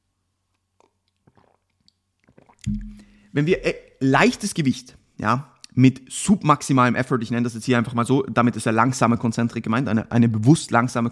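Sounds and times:
person sipping a drink: 0:00.8 - 0:04.0
speech: 0:02.6 - 0:11.0
low thump: 0:02.7 - 0:03.8.

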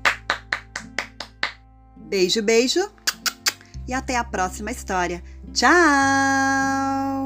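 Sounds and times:
hands clapping: 0:00.0 - 0:01.6
speech: 0:02.1 - 0:03.0, 0:03.9 - 0:07.1.

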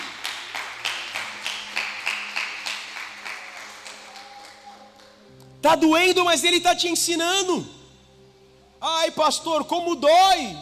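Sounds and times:
audience applause: 0:00.0 - 0:05.2
speech: 0:05.6 - 0:07.8, 0:09.0 - 0:10.5.

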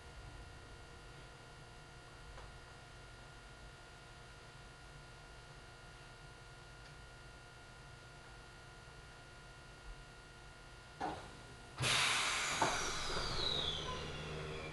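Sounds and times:
Ohmi Railway train rumble: 0:11.2 - 0:14.7.

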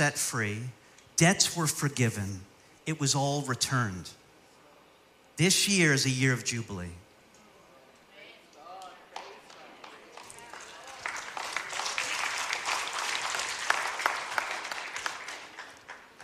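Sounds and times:
speech: 0:00.0 - 0:04.2, 0:05.4 - 0:07.0
crowd clapping: 0:09.1 - 0:16.2.

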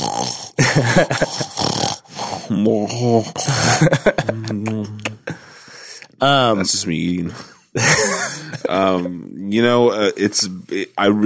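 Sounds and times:
voice imitating loud snoring: 0:00.0 - 0:05.5
laughter: 0:00.6 - 0:01.6, 0:03.4 - 0:05.4, 0:06.4 - 0:11.0
speech: 0:00.8 - 0:05.1, 0:06.2 - 0:11.2.

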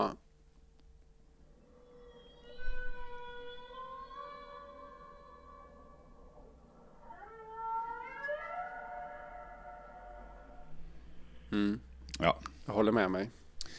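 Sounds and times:
humpback whale call: 0:01.6 - 0:11.8
speech: 0:11.6 - 0:13.4.

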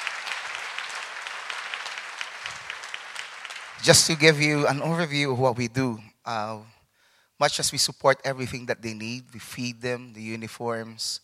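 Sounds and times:
audience clapping: 0:00.0 - 0:05.2
speech: 0:03.8 - 0:06.8, 0:07.4 - 0:11.2.

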